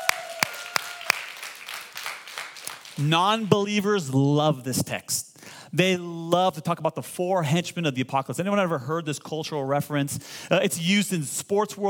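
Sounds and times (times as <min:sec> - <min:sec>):
audience applause: 0:00.0 - 0:03.1
speech: 0:03.0 - 0:11.8.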